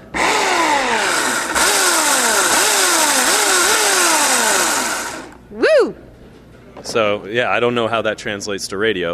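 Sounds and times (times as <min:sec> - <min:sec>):
electric chainsaw carving ice sculpture: 0:00.1 - 0:05.4
speech: 0:06.9 - 0:09.1.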